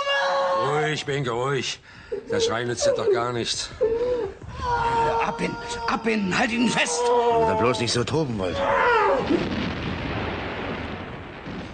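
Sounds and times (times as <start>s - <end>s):
speech: 0.9s - 9.8s
aerial bombs exploding on artillery battery: 9.1s - 11.7s.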